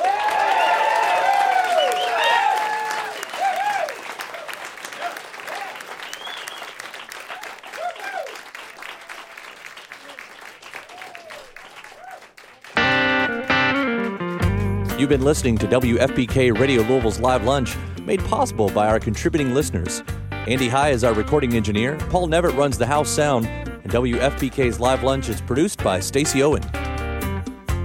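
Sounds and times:
live audience clapping: 0:00.0 - 0:14.7
whoops and whistles: 0:00.4 - 0:03.9, 0:06.0 - 0:06.7
music: 0:12.7 - 0:27.8
speech: 0:15.0 - 0:26.8.

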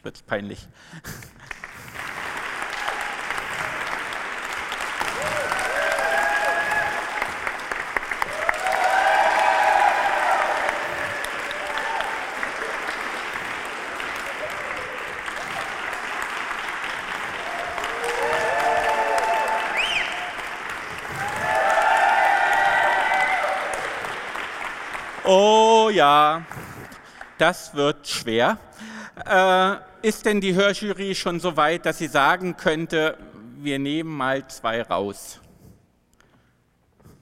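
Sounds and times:
speech: 0:00.0 - 0:01.5, 0:27.4 - 0:35.4
audience clapping: 0:01.1 - 0:27.5.

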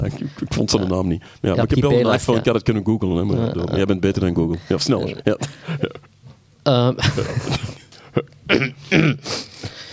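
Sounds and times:
speech: 0:00.0 - 0:05.8, 0:06.6 - 0:07.6, 0:08.5 - 0:09.4
throat clearing: 0:07.6 - 0:09.4.

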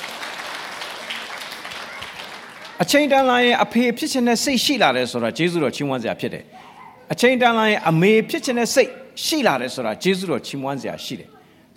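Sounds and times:
audience clapping in thanks for parents: 0:00.0 - 0:03.0
speech: 0:02.8 - 0:11.4.

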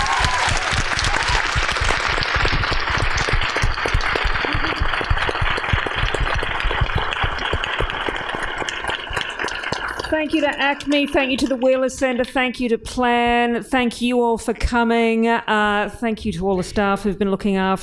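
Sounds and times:
audience applause: 0:00.0 - 0:11.6
speech: 0:10.3 - 0:17.8.

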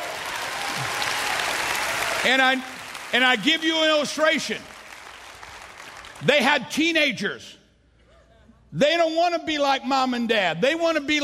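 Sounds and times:
crowd applause: 0:00.0 - 0:06.3
speech: 0:02.2 - 0:04.7, 0:06.2 - 0:07.6, 0:08.7 - 0:11.2.

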